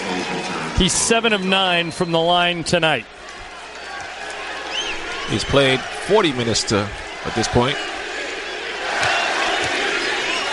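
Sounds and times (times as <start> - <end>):
speech: 0.8 - 3.2, 5.3 - 7.9
arena crowd chanting MVP at a basketball game: 3.2 - 10.5.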